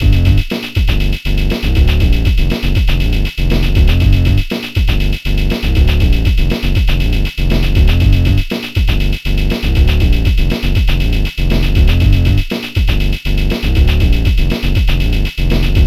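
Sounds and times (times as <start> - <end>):
hard bassline groove: 0.0 - 15.8.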